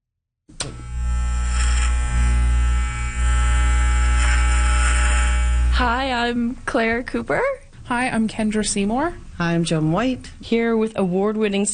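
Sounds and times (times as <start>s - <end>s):
electric hair clippers buzzing: 0.5s - 6.1s
speech: 5.8s - 11.7s.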